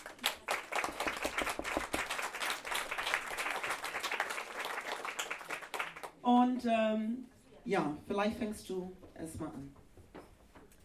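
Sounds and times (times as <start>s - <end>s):
audience applause: 0.0s - 6.1s
speech: 6.3s - 9.8s.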